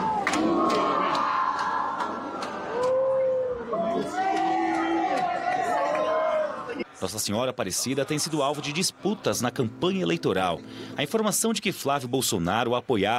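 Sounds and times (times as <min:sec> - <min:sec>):
crowd applauding and booing: 0:00.0 - 0:06.8
speech: 0:07.1 - 0:13.1.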